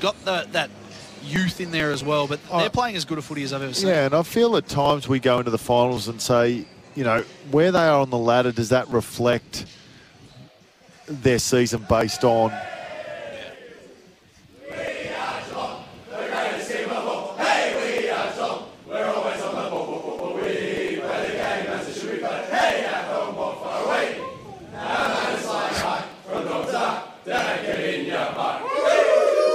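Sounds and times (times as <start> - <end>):
speech: 0.0 - 9.8, 11.1 - 12.8
group of men loudly singing a team victory song in rooms: 14.7 - 28.6.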